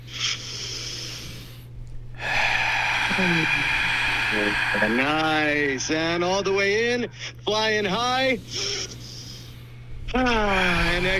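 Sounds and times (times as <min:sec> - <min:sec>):
deep breath in through the nose during a guided breathing exercise: 0:00.0 - 0:06.2, 0:08.4 - 0:11.1
low hum: 0:01.6 - 0:07.2, 0:09.1 - 0:11.1
speech: 0:03.2 - 0:09.0, 0:10.1 - 0:11.1.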